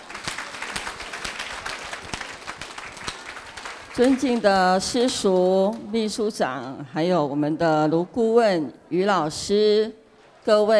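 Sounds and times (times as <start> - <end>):
applause: 0.0 - 5.5
speech: 4.0 - 10.7.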